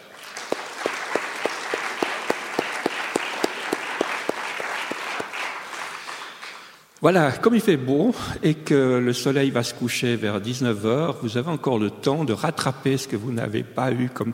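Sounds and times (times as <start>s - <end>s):
audience applause: 0.0s - 6.8s
speech: 7.0s - 14.3s.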